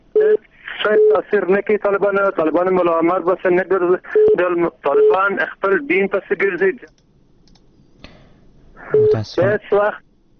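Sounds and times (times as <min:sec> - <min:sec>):
speech: 0:00.8 - 0:07.0, 0:08.9 - 0:10.0
telephone busy signal after a caller is cut off: 0:08.9 - 0:09.2.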